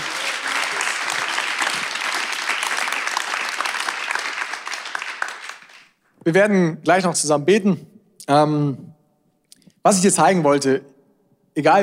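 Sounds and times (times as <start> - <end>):
audience applause: 0.0 - 6.0
speech: 6.3 - 8.9, 9.8 - 10.9, 11.6 - 11.8.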